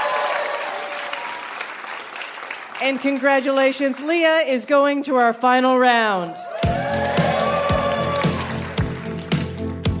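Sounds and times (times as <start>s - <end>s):
audience applause for contestants: 0.0s - 4.1s, 6.3s - 9.8s
speech: 2.8s - 6.4s.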